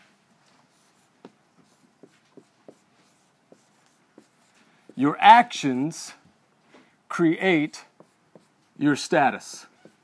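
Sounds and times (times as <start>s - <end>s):
writing on a board during a lecture: 0.7s - 5.2s, 7.6s - 10.0s
speech: 5.0s - 6.2s, 7.2s - 7.9s, 8.8s - 9.7s.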